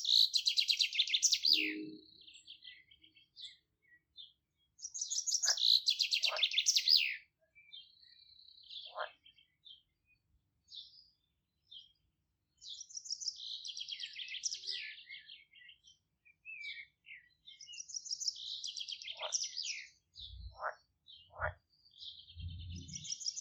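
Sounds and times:
bird chirps: 0:00.0 - 0:10.0, 0:12.6 - 0:23.3
birds singing in trilling bursts: 0:00.0 - 0:23.3
deep short croaks: 0:22.4 - 0:23.1.

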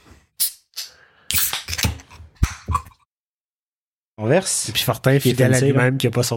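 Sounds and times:
beer can being cracked open: 0:00.4 - 0:02.8
speech: 0:04.2 - 0:06.3.

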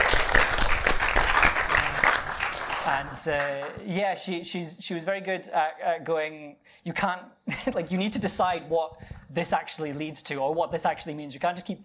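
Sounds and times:
audience round of applause: 0:00.0 - 0:03.8
speech: 0:02.9 - 0:11.8.

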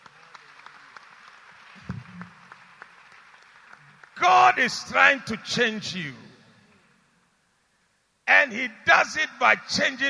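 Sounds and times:
audience clapping: 0:00.0 - 0:05.1
speech: 0:04.2 - 0:06.2, 0:08.3 - 0:10.0.

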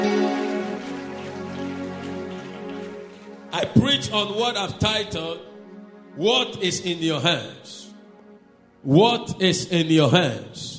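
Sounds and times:
audience clapping: 0:00.0 - 0:04.4
speech: 0:03.6 - 0:05.5, 0:06.2 - 0:07.8, 0:08.8 - 0:10.7.

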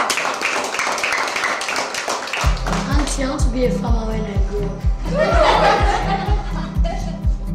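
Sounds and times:
audience clapping: 0:00.0 - 0:03.5
speech: 0:03.2 - 0:06.7
laughter: 0:05.0 - 0:07.4.

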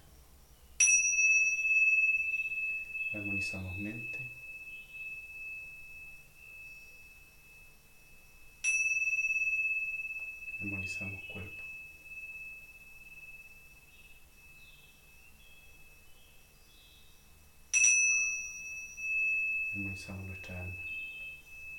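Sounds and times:
tingsha cymbals struck and ringing: 0:00.0 - 0:21.7
speech: 0:03.1 - 0:04.4, 0:10.6 - 0:11.7, 0:19.8 - 0:20.9.

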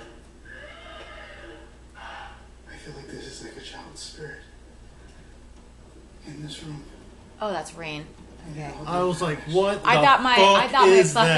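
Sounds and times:
toy horse neighing when its handle is twisted: 0:00.5 - 0:02.4
speech: 0:04.0 - 0:04.5, 0:06.3 - 0:11.3.

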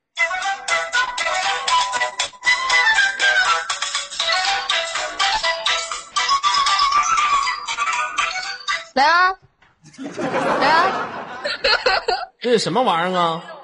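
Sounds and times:
mobile phone ringtone, video game theme: 0:01.4 - 0:09.0
speech: 0:09.0 - 0:09.4, 0:10.0 - 0:13.6
laughter: 0:09.8 - 0:12.4.

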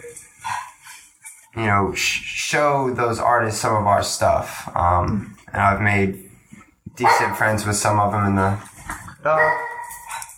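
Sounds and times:
speech: 0:01.6 - 0:06.3, 0:07.0 - 0:09.7
dog barking: 0:07.0 - 0:07.6, 0:09.3 - 0:10.3.

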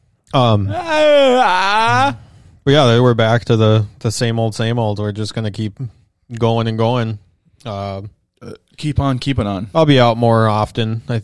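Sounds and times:
speech: 0:00.3 - 0:11.2
person yawning: 0:00.4 - 0:02.4.

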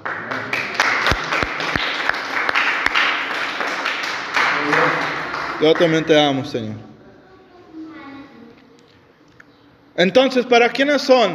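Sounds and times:
audience applause: 0:00.0 - 0:06.4
speech: 0:05.6 - 0:06.9, 0:10.0 - 0:11.3.

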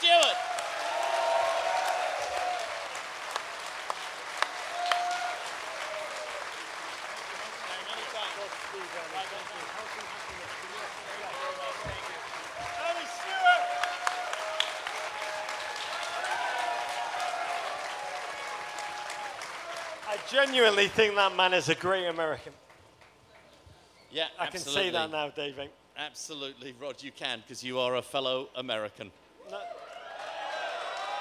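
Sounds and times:
live audience in Philadelphia applauding: 0:00.0 - 0:22.4, 0:29.8 - 0:31.1
speech: 0:20.3 - 0:22.6, 0:24.1 - 0:29.7.

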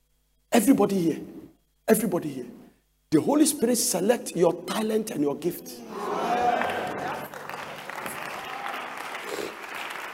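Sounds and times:
speech: 0:00.6 - 0:06.2
audience clapping: 0:06.3 - 0:10.1.

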